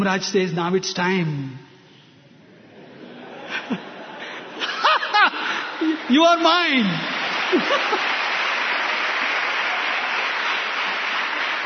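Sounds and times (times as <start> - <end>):
speech: 0.0 - 1.7, 3.7 - 3.9, 5.8 - 8.1
laughter: 2.4 - 6.2, 7.2 - 8.3
audience clapping: 4.6 - 11.6.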